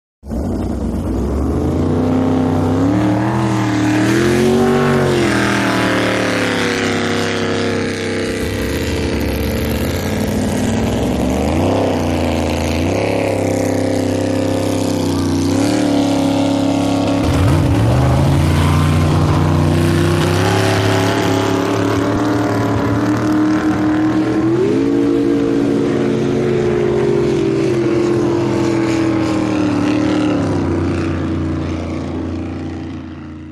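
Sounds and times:
motorboats going in and out: 0:00.2 - 0:33.5.

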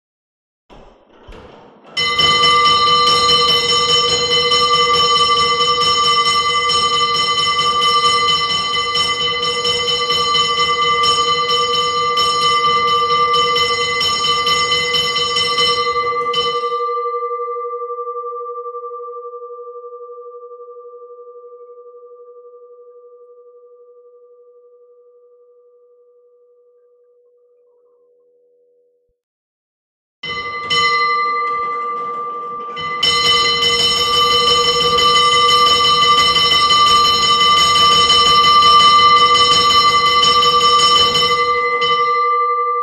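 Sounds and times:
hand-cranked fire alarm bells: 0:01.2 - 0:17.3, 0:30.2 - 0:42.7.

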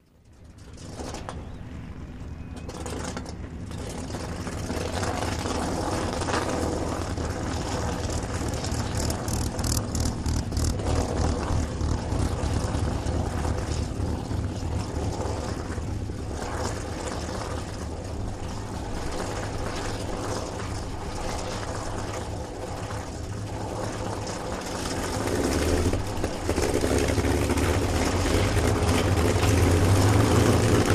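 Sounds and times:
multiple propeller planes starting and idling at an airfield: 0:00.0 - 0:30.9.

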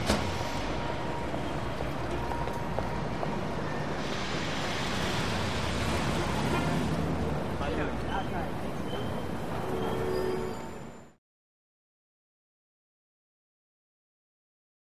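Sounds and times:
busy intersection: 0:00.0 - 0:11.2.

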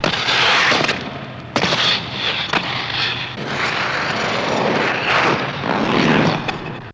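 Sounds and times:
ice skates on sled run: 0:00.0 - 0:06.9.

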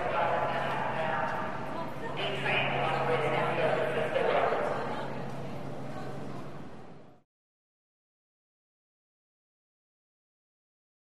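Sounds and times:
modern subway train interior: 0:00.0 - 0:07.2.

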